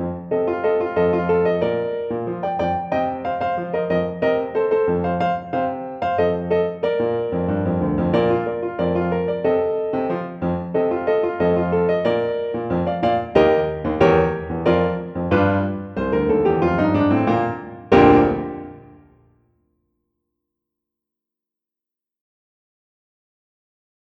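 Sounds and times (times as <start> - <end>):
musical accompaniment: 0.0 - 19.2.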